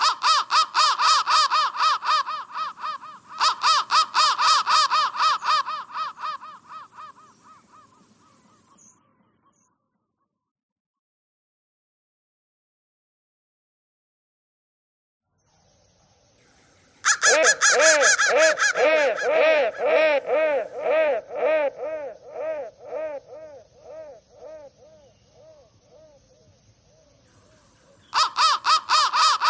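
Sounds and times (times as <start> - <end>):
crow cawing: 0.0 - 7.9, 17.0 - 25.6, 28.1 - 29.4.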